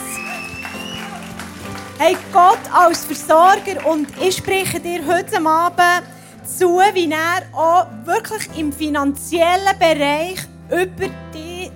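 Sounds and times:
audience applause: 0:00.0 - 0:04.9
speech: 0:02.0 - 0:11.5.

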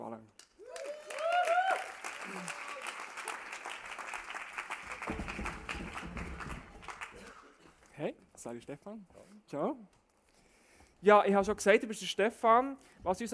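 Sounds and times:
applause: 0:00.4 - 0:07.9
speech: 0:08.0 - 0:10.0, 0:11.0 - 0:13.3.

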